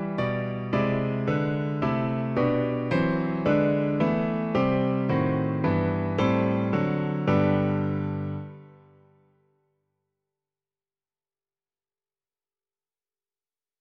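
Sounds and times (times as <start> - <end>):
piano: 0.0 - 9.5.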